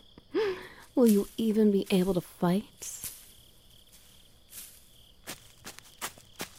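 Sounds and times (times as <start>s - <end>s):
speech: 1.0s - 3.1s
footsteps of someone running: 5.2s - 6.5s.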